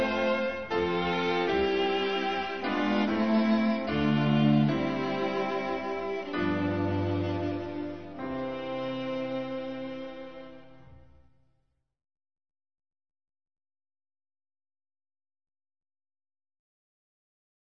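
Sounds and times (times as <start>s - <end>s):
instrumental music: 0.0s - 11.2s.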